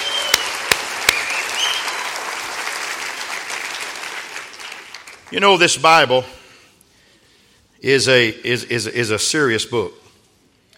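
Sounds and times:
audience at a Bible talk clapping for a guest: 0.0s - 5.5s
speech: 5.3s - 6.4s, 7.8s - 10.0s.

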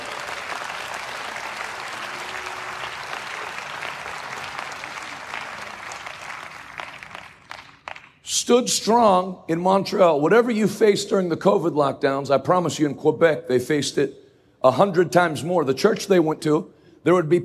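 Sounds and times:
audience applause: 0.0s - 8.2s
speech: 8.4s - 17.4s.

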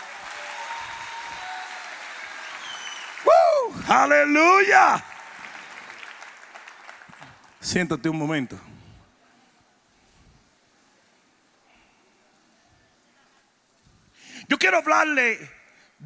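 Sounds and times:
audience applause: 0.0s - 7.7s
speech: 3.9s - 5.1s, 7.6s - 8.7s, 14.6s - 16.0s.

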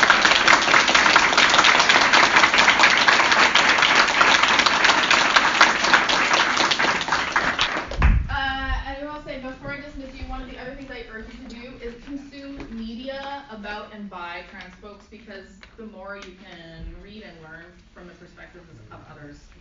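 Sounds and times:
crowd applauding: 0.0s - 8.3s.

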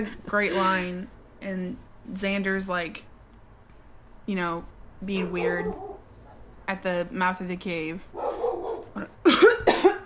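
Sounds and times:
speech: 0.0s - 3.1s, 4.3s - 5.9s, 6.7s - 8.2s, 9.0s - 9.2s
harsh coughing: 8.9s - 10.0s.

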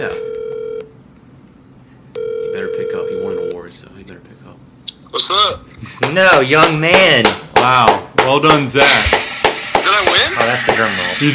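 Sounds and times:
ringback tone of an outgoing phone call: 0.0s - 0.9s, 2.2s - 3.6s
speech: 4.1s - 9.2s, 10.5s - 11.3s.

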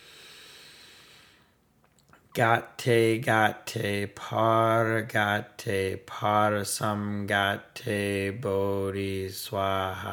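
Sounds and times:
faint inhale through the nose during a guided meditation: 0.0s - 1.6s
speech: 2.4s - 10.1s.

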